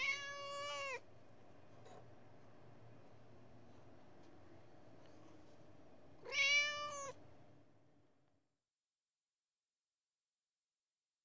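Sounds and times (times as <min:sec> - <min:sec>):
Persian cat giving a nasal meow: 0:00.0 - 0:01.0, 0:06.2 - 0:07.2
low steady background hum: 0:00.0 - 0:08.3.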